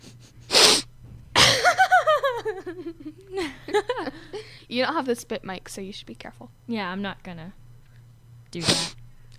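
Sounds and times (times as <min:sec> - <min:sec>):
loud sniff: 0:00.0 - 0:00.9, 0:08.6 - 0:09.0
person giggling: 0:01.3 - 0:04.5
speech: 0:04.7 - 0:07.6, 0:08.5 - 0:09.0.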